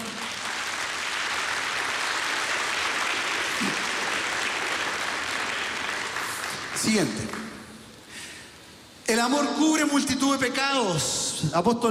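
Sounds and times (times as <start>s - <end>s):
audience applause: 0.0s - 7.6s
speech: 6.8s - 7.4s, 9.2s - 11.8s.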